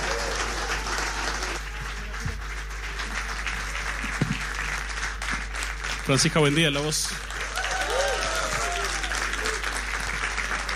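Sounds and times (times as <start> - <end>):
faint cheering: 0.0 - 1.6, 7.4 - 9.9
crowd applause: 0.0 - 10.7
speech: 6.1 - 7.3.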